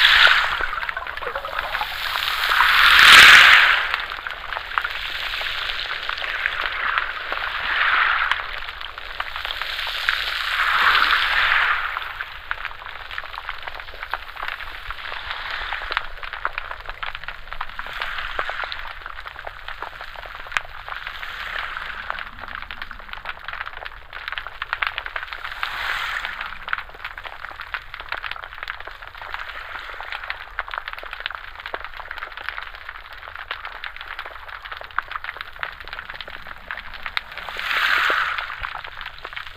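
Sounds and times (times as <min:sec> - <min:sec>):
ocean surf with pebbles recorded underwater: 0:00.0 - 0:39.5.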